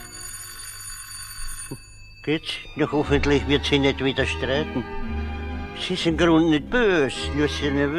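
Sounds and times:
doorbell ringing: 0.0s - 4.0s
speech: 1.7s - 5.0s, 5.8s - 7.9s.

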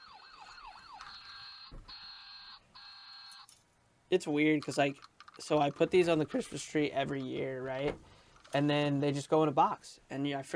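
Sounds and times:
toy fire truck ornament electronic siren wailing: 0.0s - 3.4s
speech: 4.1s - 10.5s.

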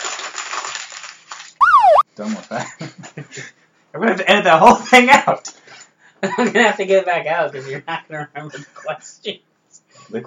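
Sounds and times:
paper crumpling: 0.0s - 1.6s
speech: 2.2s - 5.6s, 6.2s - 9.5s, 10.1s - 10.2s.

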